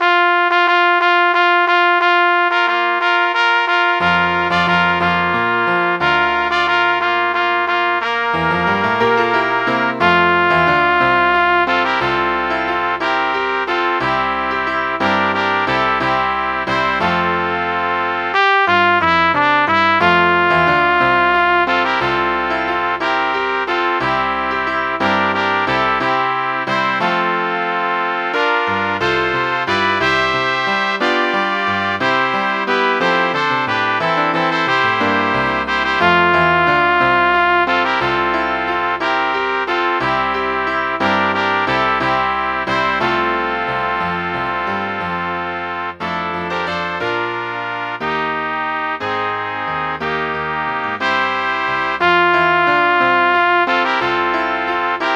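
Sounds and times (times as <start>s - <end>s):
piano: 0.0s - 55.1s
three trumpets: 0.0s - 55.1s.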